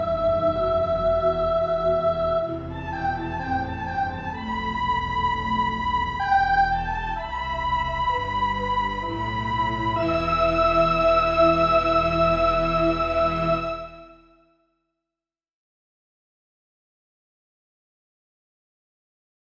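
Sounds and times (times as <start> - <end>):
bass in A minor: 0.0 - 14.3.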